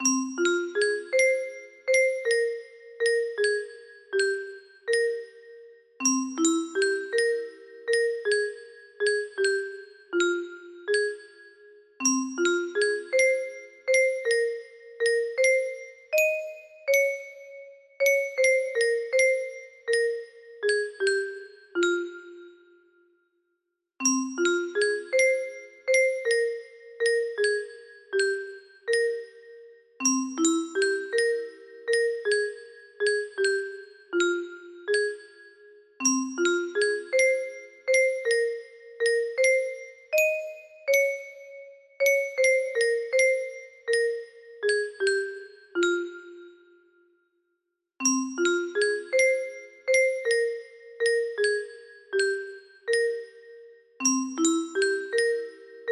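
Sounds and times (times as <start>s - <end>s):
music box melody: 0.0s - 23.1s, 24.0s - 47.1s, 48.0s - 55.9s.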